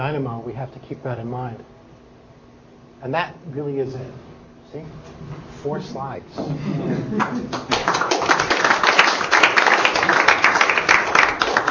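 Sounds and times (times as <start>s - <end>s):
speech: 0.0s - 1.8s, 3.0s - 8.5s
laughter: 6.4s - 7.9s
audience clapping: 7.2s - 11.6s.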